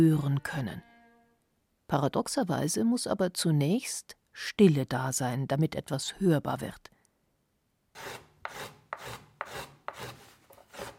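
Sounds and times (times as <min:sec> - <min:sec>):
speech: 0:00.0 - 0:00.9, 0:01.9 - 0:06.9, 0:08.0 - 0:10.1
hand tool working a piece of wood: 0:08.0 - 0:10.9.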